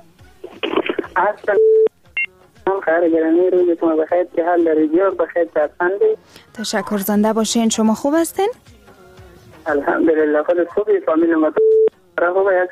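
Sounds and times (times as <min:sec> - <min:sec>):
electronic phone tones as a call connects: 0:00.6 - 0:02.4, 0:11.3 - 0:12.0
speech over a telephone-like line: 0:01.0 - 0:01.8, 0:02.6 - 0:08.5, 0:09.7 - 0:12.6
speech: 0:01.2 - 0:01.7, 0:02.9 - 0:08.8, 0:09.6 - 0:11.6, 0:12.2 - 0:12.6.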